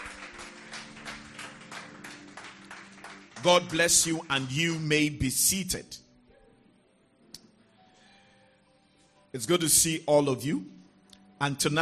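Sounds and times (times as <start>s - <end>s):
audience hand clapping: 0.0s - 5.1s
speech: 3.4s - 6.0s, 9.4s - 10.8s, 11.4s - 11.8s.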